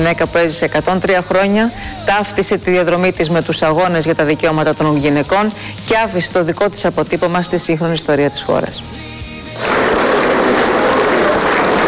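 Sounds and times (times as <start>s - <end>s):
speech: 0.0s - 9.8s
prolonged warm applause at a funeral: 9.6s - 11.8s.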